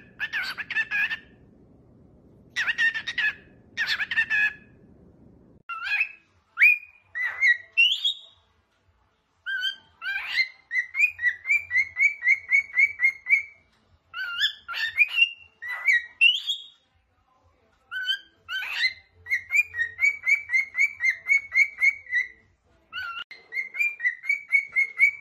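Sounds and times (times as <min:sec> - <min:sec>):
cockatiel chirps and whistles: 0:00.0 - 0:01.4, 0:02.5 - 0:04.7, 0:05.7 - 0:08.4, 0:09.4 - 0:16.8, 0:17.9 - 0:25.1.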